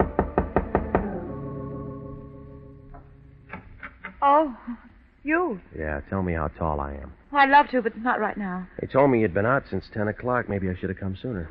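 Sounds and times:
knocking on a door: 0.0 - 1.2
sustained ringing tone: 0.0 - 3.5
speech: 4.3 - 11.4.

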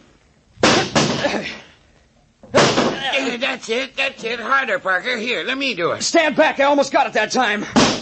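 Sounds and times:
door being bashed to break it down: 0.6 - 1.4, 2.5 - 3.2, 7.8 - 8.0
speech: 1.3 - 1.7, 3.1 - 8.0.

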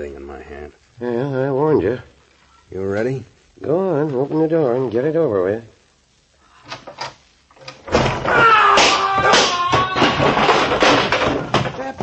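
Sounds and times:
speech: 0.0 - 2.1, 2.7 - 5.7
person falling with a thud: 7.9 - 12.0.

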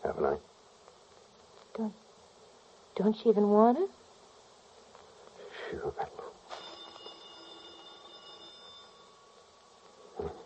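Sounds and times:
speech: 1.8 - 2.0, 3.0 - 4.0
telephone ringing with electric bell tone: 6.5 - 9.7.

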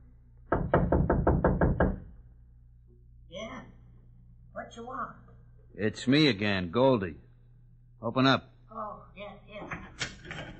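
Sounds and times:
knocking: 0.5 - 2.1
speech: 4.7 - 7.2, 8.0 - 9.8.

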